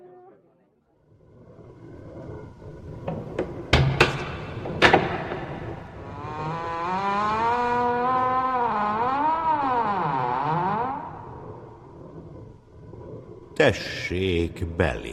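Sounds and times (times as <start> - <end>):
oak castle gate creaking: 3.7 - 11.5
speech: 13.6 - 15.1.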